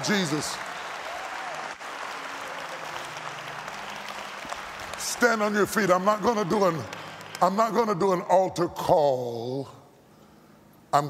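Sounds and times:
speech: 0.0s - 0.7s, 5.2s - 9.8s
audience clapping hands: 0.0s - 8.2s.

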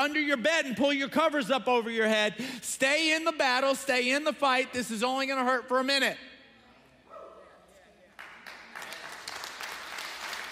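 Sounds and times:
speech: 0.0s - 6.3s
scattered audience clapping: 8.0s - 10.5s.

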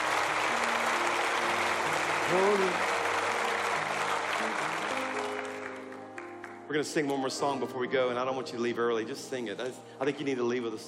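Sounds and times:
audience applauding: 0.0s - 6.7s
speech: 2.3s - 2.9s, 6.7s - 10.8s.

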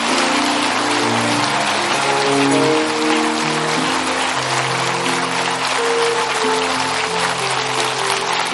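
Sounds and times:
audience hand clapping: 0.0s - 8.5s.

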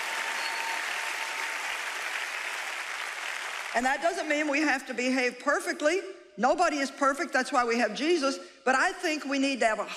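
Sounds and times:
audience clapping: 0.0s - 4.1s
speech: 3.7s - 9.9s.

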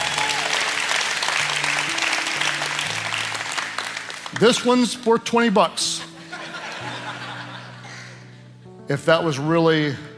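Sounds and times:
audience applause: 0.0s - 4.7s
speech: 4.4s - 6.1s, 8.9s - 10.1s
laughter: 5.8s - 8.3s.

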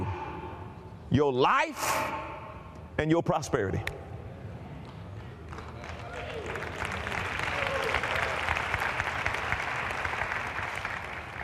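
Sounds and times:
speech: 1.1s - 2.3s, 3.0s - 4.1s
audience clapping: 5.2s - 11.4s.

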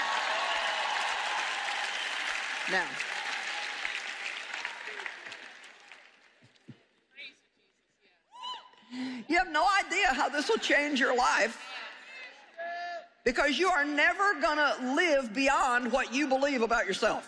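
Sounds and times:
audience applause: 0.0s - 6.7s
speech: 2.7s - 3.2s, 9.4s - 11.6s, 13.3s - 17.2s.

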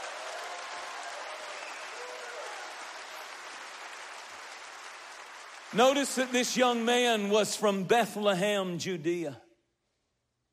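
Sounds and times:
audience clapping: 0.0s - 7.8s
speech: 5.7s - 9.4s.

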